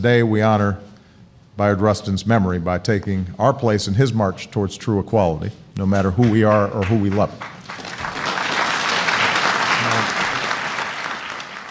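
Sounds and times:
speech: 0.0s - 0.9s, 1.6s - 7.8s
audience applause: 6.8s - 11.6s.

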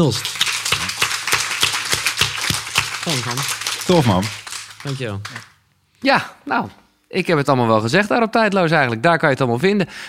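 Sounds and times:
speech: 0.0s - 0.4s, 3.1s - 10.0s
audience applause: 0.0s - 5.6s.

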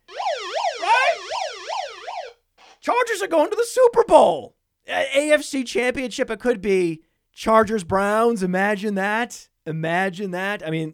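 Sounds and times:
alarm going off: 0.0s - 2.4s
speech: 3.0s - 10.9s.

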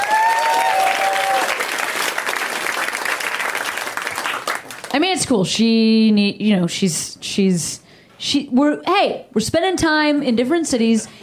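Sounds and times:
comedy show audience applause: 0.0s - 4.9s
speech: 5.0s - 11.2s.

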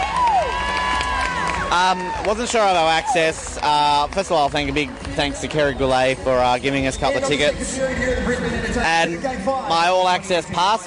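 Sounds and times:
crowd cheering at sledge hockey game: 0.0s - 7.5s
speech: 1.7s - 10.8s.

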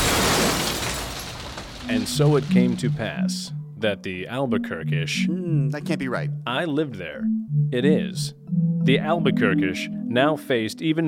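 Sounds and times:
bubble dome cracking and shattering: 0.0s - 3.2s
speech: 1.9s - 11.0s.

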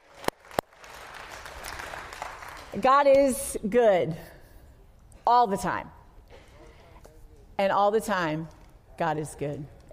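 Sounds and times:
congregation clapping: 0.0s - 2.8s
speech: 2.8s - 4.3s, 5.3s - 6.0s, 7.6s - 9.9s.

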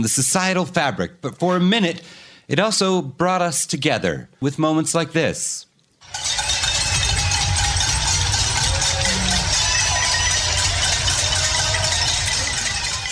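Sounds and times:
speech: 0.0s - 6.4s
many people banging metal pots: 6.0s - 13.1s
people clapping: 6.0s - 13.1s
low rumble: 6.1s - 12.7s.

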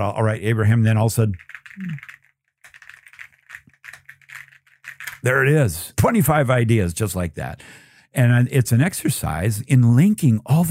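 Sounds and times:
speech: 0.0s - 2.1s, 5.2s - 10.6s
typing on a computer keyboard: 1.4s - 5.3s.

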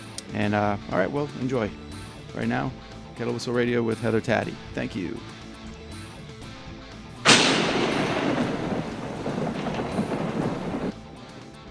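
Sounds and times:
speech: 0.3s - 5.3s
nearby lightning strike thunder: 7.2s - 11.0s.

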